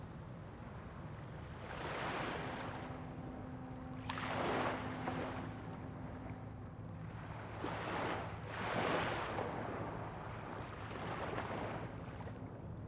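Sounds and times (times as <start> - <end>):
waves on shore in Lappi: 0.0 - 12.8.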